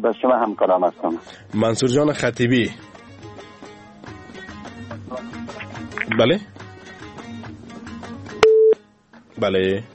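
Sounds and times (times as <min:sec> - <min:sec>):
speech: 0:00.0 - 0:03.0, 0:06.1 - 0:06.6, 0:09.4 - 0:09.9
phone line busy tone beep after a cut-off call: 0:08.4 - 0:08.8.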